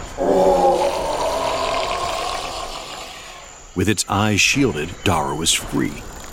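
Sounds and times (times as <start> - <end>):
monster creature howling in pain: 0.1 - 3.5
speech: 3.8 - 6.1.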